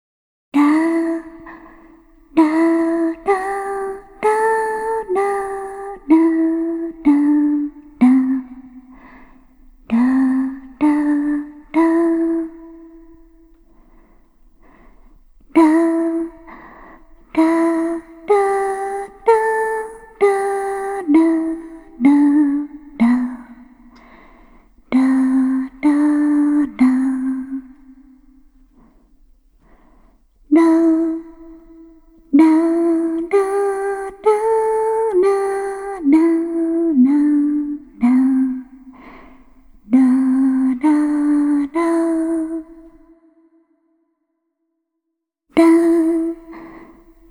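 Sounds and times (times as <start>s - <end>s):
lullaby with reverb: 0.6s - 28.9s, 30.5s - 43.5s, 45.6s - 47.2s.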